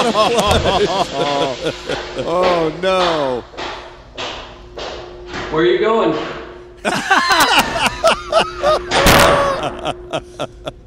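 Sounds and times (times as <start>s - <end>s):
laughter: 0.0s - 2.8s, 6.8s - 10.8s
speech: 0.0s - 3.6s, 5.5s - 10.8s
door slamming violently: 0.5s - 0.8s, 8.9s - 9.6s.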